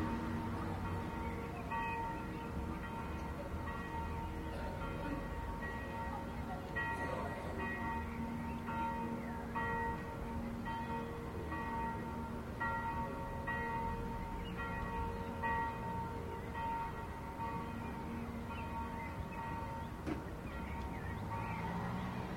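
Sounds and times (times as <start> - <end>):
church bells: 0.0 - 22.3.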